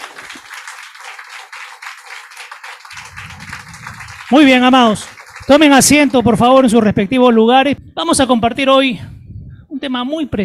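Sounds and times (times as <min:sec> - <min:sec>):
audience applause: 0:00.0 - 0:06.2
low rumble of crowd noise: 0:02.9 - 0:04.4
speech: 0:04.3 - 0:09.1, 0:09.8 - 0:10.4.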